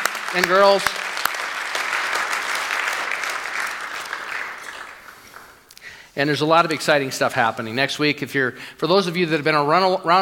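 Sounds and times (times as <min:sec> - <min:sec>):
audience applause: 0:00.0 - 0:05.7
speech: 0:00.3 - 0:01.1, 0:06.2 - 0:10.2.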